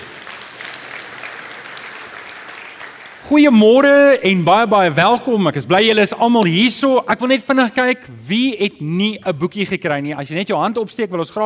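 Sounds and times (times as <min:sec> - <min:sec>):
audience applause for the band: 0:00.0 - 0:03.5
speech: 0:03.2 - 0:11.4.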